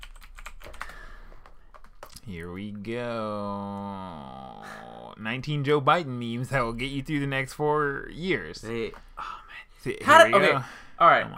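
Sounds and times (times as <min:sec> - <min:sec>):
fingers typing on a computer keyboard: 0:00.0 - 0:02.2
speech: 0:02.3 - 0:09.1, 0:09.8 - 0:11.3.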